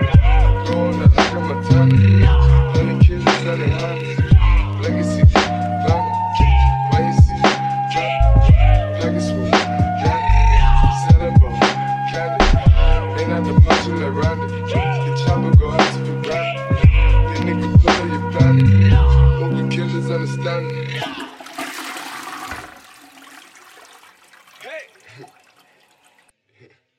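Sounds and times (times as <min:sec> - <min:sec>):
lofi remix music: 0:00.0 - 0:21.1.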